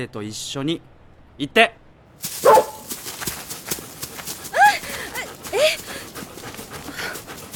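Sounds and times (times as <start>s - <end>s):
speech: 0.0s - 2.6s
scuffling: 2.2s - 7.5s
golden retriever barking on a leash: 2.4s - 2.9s
golden retriever panting: 2.4s - 7.5s.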